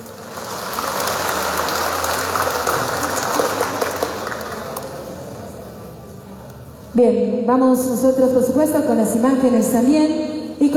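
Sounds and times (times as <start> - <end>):
audience applause: 0.0 - 5.4
speech: 7.0 - 10.7.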